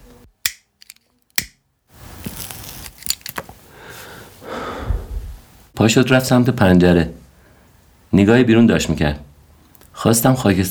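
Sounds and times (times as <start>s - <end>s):
cigarette lighter struck: 0.4s - 3.4s
speech: 5.8s - 7.2s, 8.1s - 9.3s, 10.0s - 10.6s.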